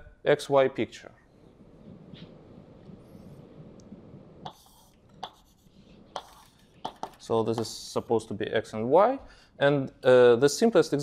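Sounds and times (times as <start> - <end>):
speech: 0.2 - 1.2, 7.3 - 11.0
drawing strokes sketching diagrams of junctions and crossings: 4.4 - 8.2.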